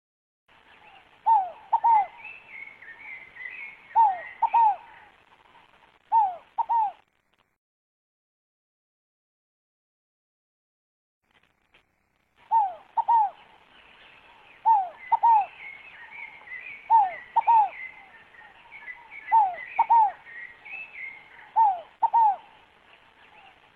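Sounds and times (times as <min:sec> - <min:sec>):
scaled dove cooing: 0:00.8 - 0:05.2, 0:06.1 - 0:07.0, 0:12.4 - 0:22.7, 0:23.3 - 0:23.7.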